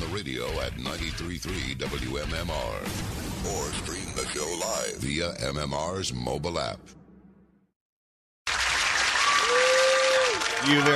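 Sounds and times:
speech: 0.2 - 7.0, 10.6 - 10.9
live applause: 8.5 - 10.9.

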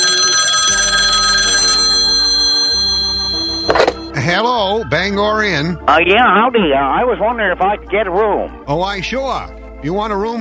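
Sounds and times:
telephone bell ringing: 0.0 - 4.1
speech: 4.4 - 10.3.

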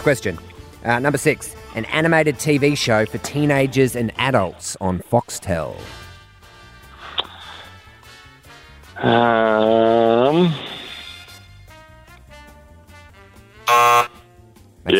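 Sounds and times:
speech: 0.0 - 6.0, 9.0 - 10.7
quiz show buzzer: 13.6 - 14.2.

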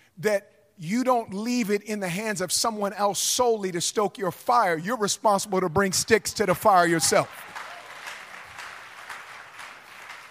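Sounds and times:
speech: 0.2 - 7.5
audience clapping: 5.9 - 10.2.

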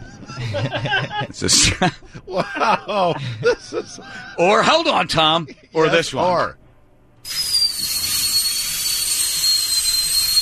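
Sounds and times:
laughter: 0.0 - 4.6
speech: 0.3 - 6.6, 7.2 - 7.4
dental drill whirring: 7.2 - 10.4.

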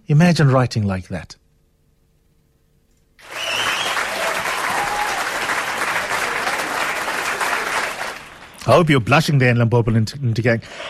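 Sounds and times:
speech: 0.1 - 1.4, 8.6 - 10.8
applause: 3.2 - 8.8.

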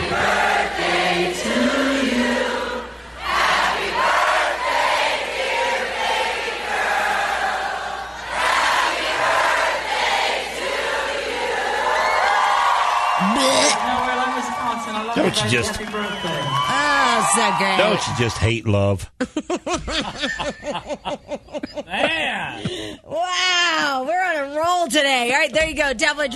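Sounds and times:
large crowd cheering: 0.0 - 18.9
speech: 15.4 - 16.4, 17.3 - 26.3
laughter: 19.2 - 23.0.

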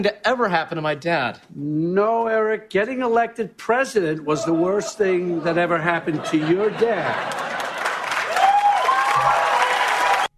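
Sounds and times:
speech: 0.0 - 7.5
laughter: 4.3 - 8.3
crowd clapping: 7.1 - 10.3
whistles and cheers: 8.2 - 10.3.

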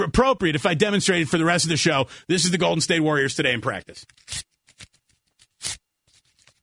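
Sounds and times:
speech: 0.0 - 4.5
something being torn into tiny pieces: 4.0 - 6.6.

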